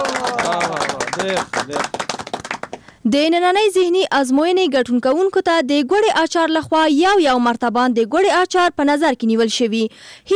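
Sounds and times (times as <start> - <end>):
clapping for a correct answer on a quiz show: 0.0 - 3.0
speech: 1.2 - 2.0, 3.1 - 10.3.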